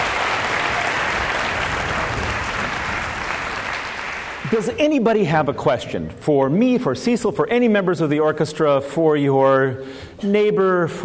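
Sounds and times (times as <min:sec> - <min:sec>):
applause for an orchestra at the end of a performance: 0:00.0 - 0:04.8
speech: 0:04.5 - 0:11.0.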